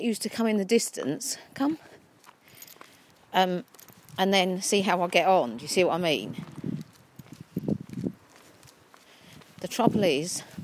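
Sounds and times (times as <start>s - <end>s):
speech: 0.0s - 1.9s, 3.3s - 6.6s, 9.7s - 10.6s
horse hooves clip-clopping at a walk: 2.2s - 10.6s.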